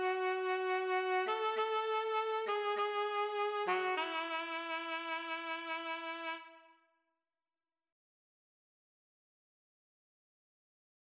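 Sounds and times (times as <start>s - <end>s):
saxophone: 0.0s - 6.8s.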